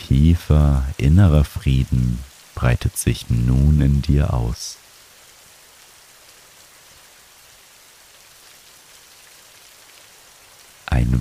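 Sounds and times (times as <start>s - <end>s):
steady rain falling: 0.0s - 11.2s
speech: 0.1s - 4.8s, 11.0s - 11.2s.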